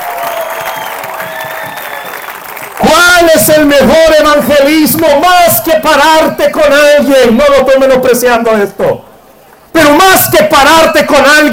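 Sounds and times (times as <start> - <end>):
faint whistles and cheers: 0.0 - 2.5
audience applause: 0.0 - 2.9
speech: 3.4 - 9.1, 10.2 - 11.5.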